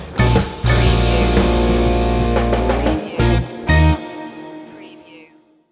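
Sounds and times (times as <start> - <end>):
organ stinger: 0.1 - 5.5.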